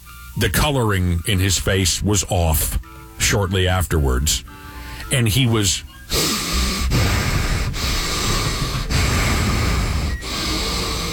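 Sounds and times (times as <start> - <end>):
speech: 0.4 - 6.3
person imitating heavy labored breathing: 4.5 - 5.1, 6.0 - 11.1.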